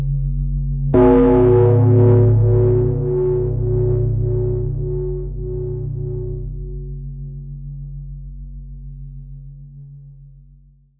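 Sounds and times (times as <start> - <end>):
distorted bells: 1.0 - 6.6.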